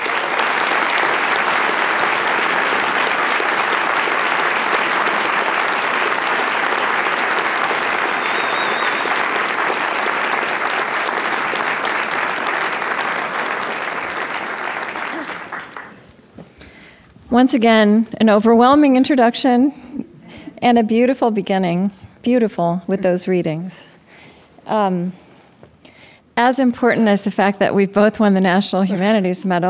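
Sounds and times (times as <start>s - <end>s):
audience applause welcoming Isabel Wilkerson and Krista Tippett: 0.0s - 16.1s
speech: 17.4s - 19.8s, 20.6s - 23.9s, 24.7s - 25.2s, 26.4s - 29.6s.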